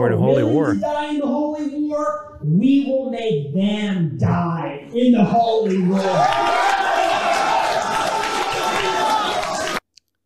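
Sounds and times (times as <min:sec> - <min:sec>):
speech: 0:00.0 - 0:06.7
crowd applauding and cheering: 0:05.9 - 0:09.8.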